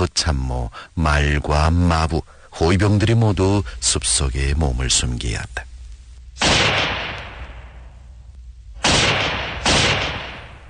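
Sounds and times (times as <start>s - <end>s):
speech: 0.0s - 5.7s
ear-splitting gunshots: 6.4s - 7.9s, 8.8s - 10.6s.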